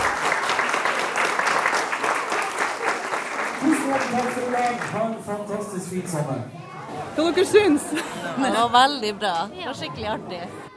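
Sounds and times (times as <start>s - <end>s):
audience applause after children sang hit songs: 0.0s - 5.5s
speech: 4.1s - 6.6s, 7.2s - 10.7s.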